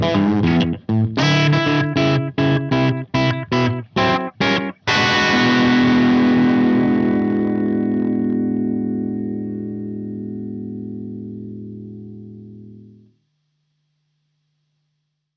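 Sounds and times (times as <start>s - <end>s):
blues music: 0.0s - 13.0s.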